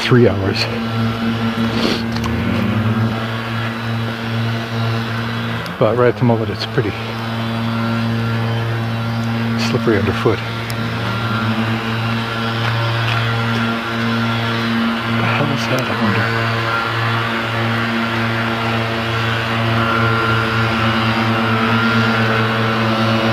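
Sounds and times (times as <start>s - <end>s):
leaf blowers running: 0.0s - 23.3s
speech: 0.1s - 2.4s, 5.8s - 7.2s, 9.7s - 10.6s, 15.7s - 16.4s.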